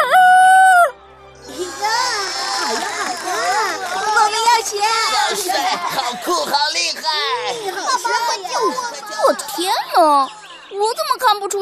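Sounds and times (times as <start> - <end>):
voice imitating a rooster's crow: 0.0 - 0.9
laughter: 1.5 - 10.0
speech: 11.0 - 11.6.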